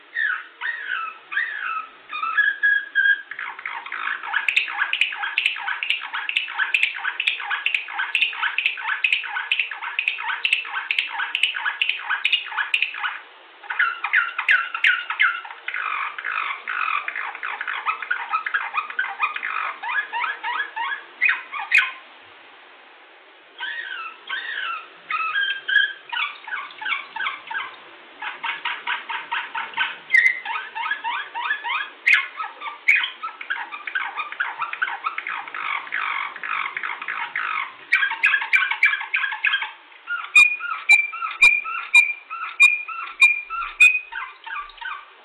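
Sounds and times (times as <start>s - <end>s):
Balkan nightingale singing: 0.1s - 22.0s, 23.6s - 45.1s.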